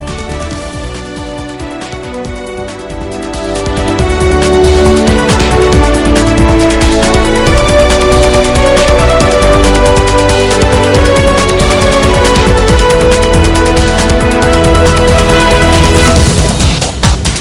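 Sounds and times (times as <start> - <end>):
orchestra: 0.0 - 17.3.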